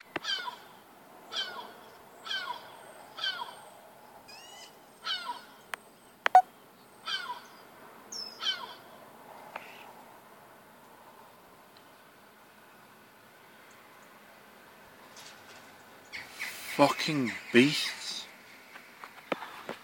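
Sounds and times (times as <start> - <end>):
birds calling on a street: 0.0 - 9.0, 15.5 - 19.2.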